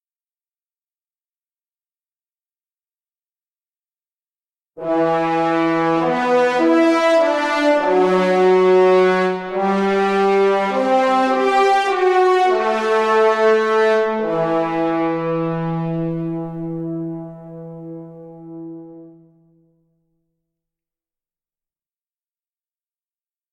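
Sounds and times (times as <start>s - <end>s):
horns: 4.8s - 19.5s.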